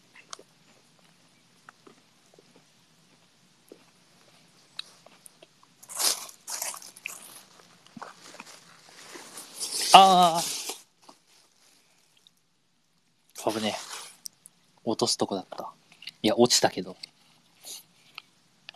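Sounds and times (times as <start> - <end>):
biting and chewing crunchy milk chocolate bar: 0.0 - 9.8, 10.7 - 12.4, 15.6 - 16.3, 16.9 - 18.7
speech: 15.0 - 17.1.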